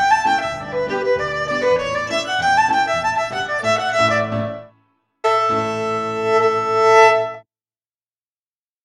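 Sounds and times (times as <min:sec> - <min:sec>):
fiddle and piano playing a reel: 0:00.0 - 0:04.7, 0:05.3 - 0:07.4.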